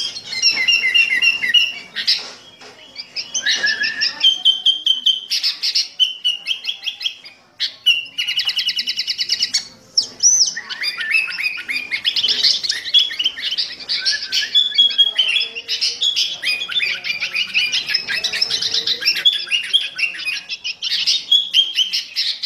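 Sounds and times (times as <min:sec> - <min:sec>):
sooty-headed bulbul chattering song in fierce thunder voice style: 0:00.0 - 0:22.4.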